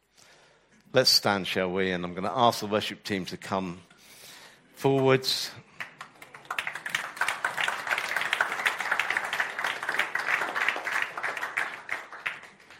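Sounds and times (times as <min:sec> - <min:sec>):
speech: 0:01.0 - 0:03.9, 0:04.8 - 0:05.6
audience clapping: 0:04.8 - 0:12.7.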